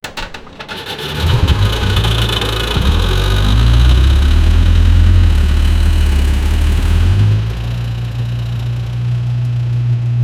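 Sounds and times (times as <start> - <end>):
Bolero jeep approaching: 0.7 - 10.1.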